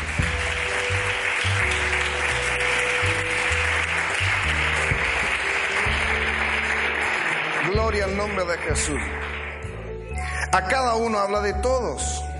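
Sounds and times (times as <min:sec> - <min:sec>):
audience applause: 0:00.0 - 0:09.9
speech: 0:08.2 - 0:09.3, 0:10.5 - 0:12.2.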